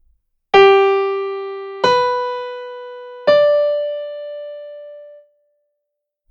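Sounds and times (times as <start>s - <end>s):
melody built on a triad leaping by thirds: 0.6s - 5.2s.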